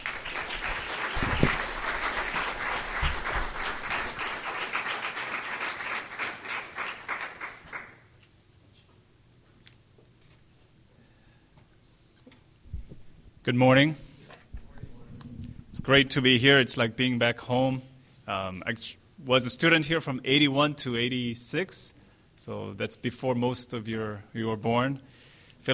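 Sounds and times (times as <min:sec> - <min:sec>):
congregation applause welcoming a pastor before a morning sermon: 0:00.0 - 0:08.1
speech: 0:13.5 - 0:14.0, 0:15.9 - 0:25.7.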